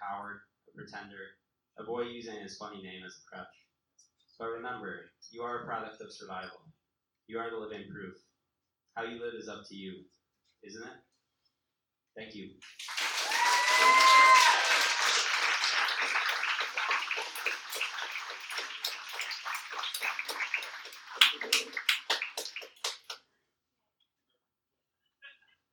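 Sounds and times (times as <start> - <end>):
speech: 0.8 - 3.6, 4.4 - 6.7, 7.3 - 8.3, 9.0 - 11.1, 12.2 - 13.0
audience applause: 12.6 - 23.2.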